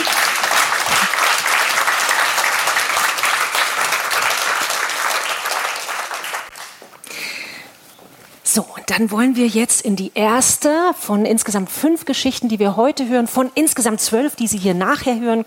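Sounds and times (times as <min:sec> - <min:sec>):
audience applause: 0:00.0 - 0:06.8
speech: 0:08.5 - 0:15.4.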